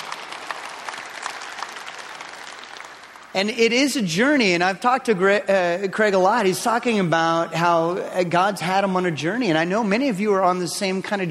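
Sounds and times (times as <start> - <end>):
audience clapping: 0.0 - 3.6
speech: 3.4 - 11.2.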